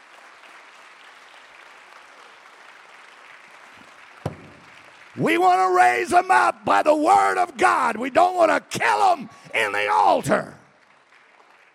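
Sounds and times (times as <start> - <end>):
audience clapping hands: 0.0 - 6.3, 9.7 - 11.7
speech: 5.2 - 10.6.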